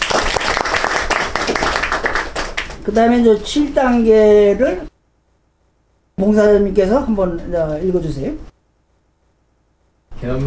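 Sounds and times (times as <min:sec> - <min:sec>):
church twelve-step group applauding to welcome a member: 0:00.0 - 0:03.1
speech: 0:02.9 - 0:04.9, 0:06.2 - 0:08.5, 0:10.2 - 0:10.4.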